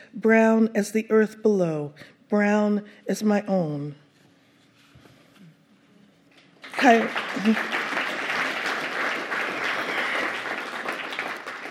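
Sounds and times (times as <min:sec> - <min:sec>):
speech: 0:00.1 - 0:04.0, 0:06.8 - 0:07.8
audience clapping: 0:06.6 - 0:11.6.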